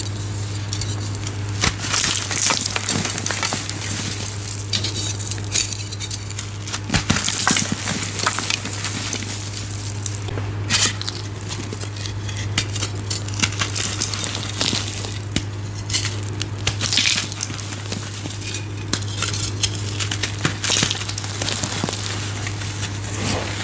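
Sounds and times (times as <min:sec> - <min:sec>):
steady low hum: 0:00.0 - 0:23.6
gym chalk soaked with baby oil being crushed: 0:00.2 - 0:23.6.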